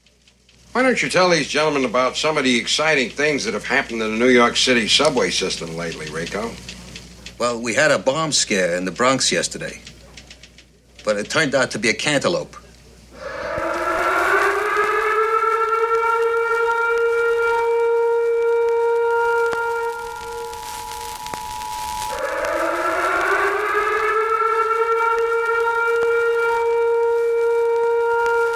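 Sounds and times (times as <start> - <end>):
speech: 0.8 - 6.8, 7.4 - 10.0, 11.0 - 12.6
emergency broadcast alert siren wailing: 1.2 - 6.6, 13.2 - 28.5.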